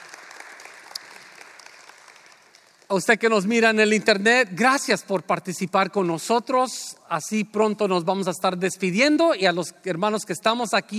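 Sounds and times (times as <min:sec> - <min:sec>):
faint congregation applause at the close of a church service: 0:00.0 - 0:02.9
speech: 0:02.9 - 0:10.9.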